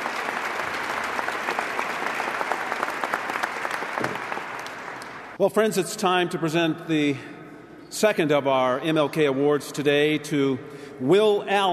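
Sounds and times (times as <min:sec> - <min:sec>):
audience applause: 0:00.0 - 0:05.4
speech: 0:05.4 - 0:11.7.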